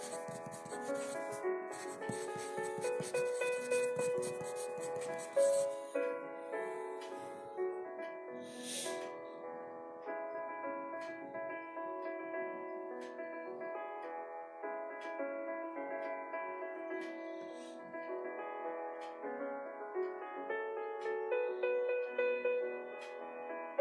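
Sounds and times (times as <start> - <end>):
quick scratchy pencil strokes: 0.0 - 5.9, 8.6 - 9.0
soft K-pop piano music: 0.0 - 23.8.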